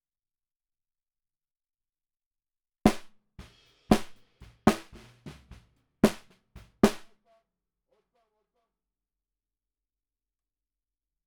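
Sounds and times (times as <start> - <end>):
bottom snare drum: 2.9 - 7.2.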